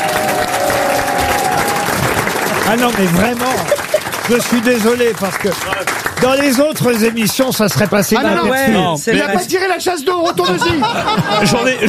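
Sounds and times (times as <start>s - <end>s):
studio audience applause at a French television talk show: 0.0s - 8.9s
laughter: 1.0s - 4.9s, 10.1s - 11.8s
speech: 2.7s - 11.8s.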